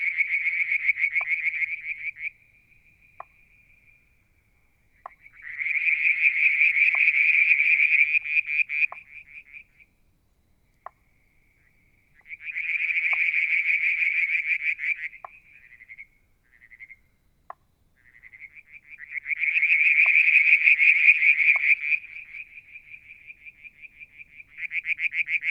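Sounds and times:
frogs trilling: 0.0 - 9.9, 10.8 - 25.4.

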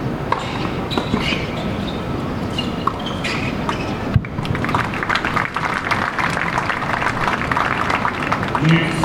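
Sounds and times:
tennis match at night in North Carolina: 0.1 - 9.0.

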